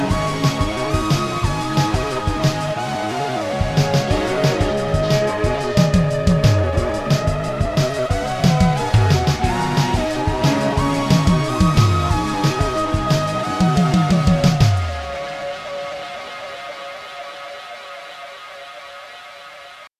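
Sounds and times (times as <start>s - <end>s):
game boss music: 0.0s - 15.4s.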